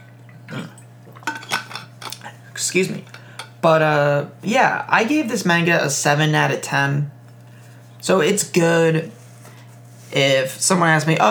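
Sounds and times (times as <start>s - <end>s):
person sipping water: 0.1s - 3.6s
speech: 2.6s - 7.2s, 8.0s - 9.2s, 10.1s - 11.2s.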